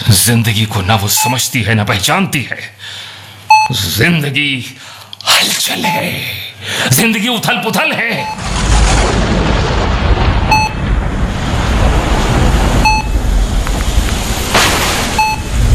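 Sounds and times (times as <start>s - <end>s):
speech: 0.2s - 3.1s, 3.7s - 8.6s
brief beep-like tones: 1.2s - 1.4s, 3.5s - 3.8s, 5.8s - 6.1s, 8.2s - 8.4s, 10.5s - 10.8s, 12.8s - 13.2s, 15.1s - 15.6s
low rumbling thunder: 8.3s - 15.7s
heavy rain in a thunderstorm: 8.4s - 15.7s.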